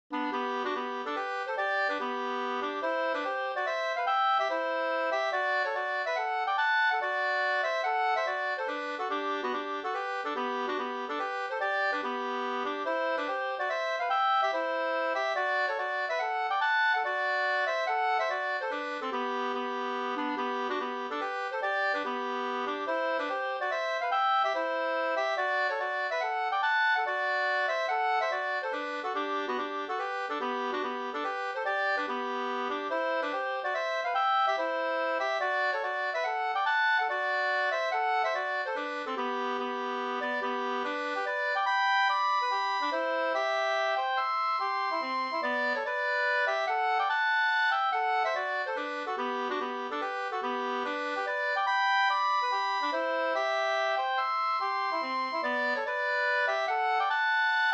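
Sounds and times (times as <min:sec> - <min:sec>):
mazurka tune: 0:00.1 - 0:57.7.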